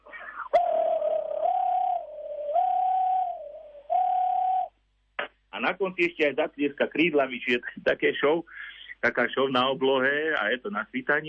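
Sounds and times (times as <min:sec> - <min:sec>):
person imitating European nightjar churring: 0:00.0 - 0:04.7
speech: 0:05.6 - 0:11.2.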